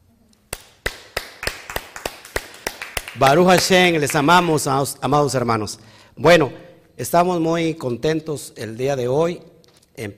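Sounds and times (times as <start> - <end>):
hand claps from a couple of people: 0.5 - 4.7
speech: 3.2 - 10.1.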